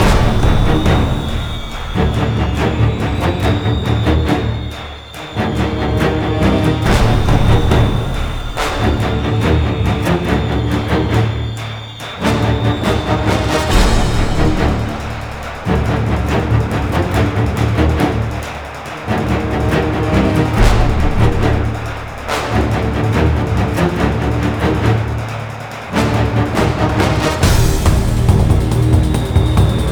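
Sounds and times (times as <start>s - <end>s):
suspense music: 0.0s - 29.8s.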